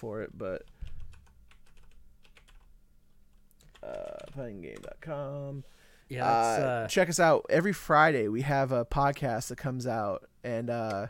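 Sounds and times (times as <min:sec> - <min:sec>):
speech: 0:00.0 - 0:00.8, 0:03.8 - 0:11.0
typing on a computer keyboard: 0:00.6 - 0:02.7, 0:03.3 - 0:05.0.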